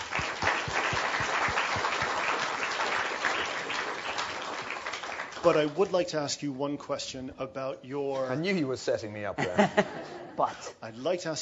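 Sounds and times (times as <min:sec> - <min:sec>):
audience applause for speaker: 0:00.0 - 0:05.9
speech: 0:05.4 - 0:11.3
laughter: 0:09.4 - 0:10.6.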